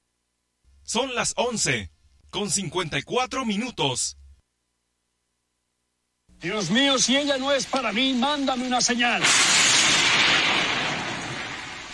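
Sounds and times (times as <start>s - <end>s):
speech: 0.9s - 4.2s, 6.4s - 9.6s
thunder clap: 9.2s - 11.9s.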